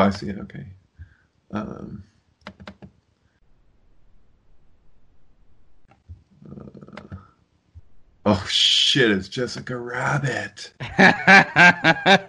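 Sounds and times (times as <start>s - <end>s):
speech: 0.0s - 0.8s, 1.5s - 2.8s, 8.2s - 12.2s
quiet hiss: 0.0s - 12.2s
key and mouse clicks on a computer opening a link: 2.4s - 3.0s, 5.8s - 7.9s
vocal sound: 6.4s - 7.2s
laughter: 10.8s - 12.2s.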